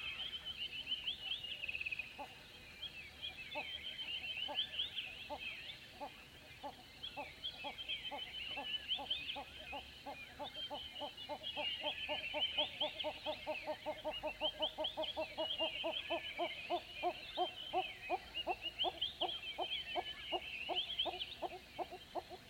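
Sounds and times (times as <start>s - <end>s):
busy high birdsong: 0.0s - 22.4s
hornbills calling: 9.4s - 22.4s.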